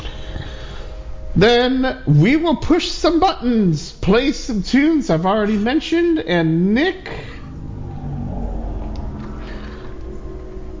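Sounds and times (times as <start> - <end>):
speech: 1.4 - 7.3
car passing by: 7.0 - 10.7.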